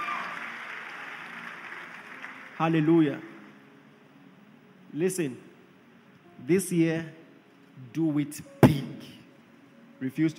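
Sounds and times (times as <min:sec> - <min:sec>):
audience clapping: 0:00.0 - 0:03.6
speech: 0:02.6 - 0:03.3, 0:04.9 - 0:05.5, 0:06.4 - 0:07.2, 0:07.8 - 0:09.2, 0:10.0 - 0:10.3.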